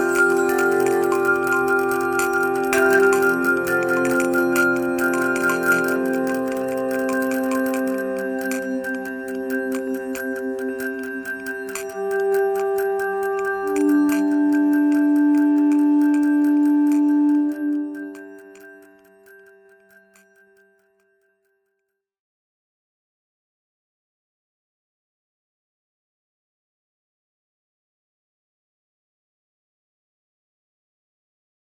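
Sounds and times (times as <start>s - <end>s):
jingles: 0.0s - 17.0s.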